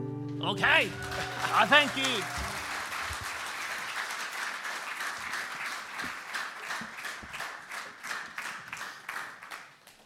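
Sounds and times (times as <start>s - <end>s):
speech: 0.6s - 2.4s
audience applause: 0.7s - 10.0s.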